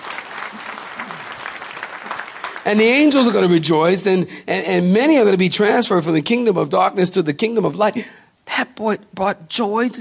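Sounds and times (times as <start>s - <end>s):
audience clapping hands: 0.0s - 3.5s
speech: 2.6s - 9.9s.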